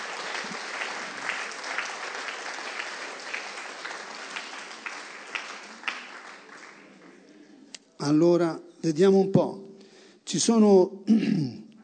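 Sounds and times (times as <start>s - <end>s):
audience applause: 0.0s - 7.5s
speech: 8.0s - 9.6s, 10.3s - 11.6s.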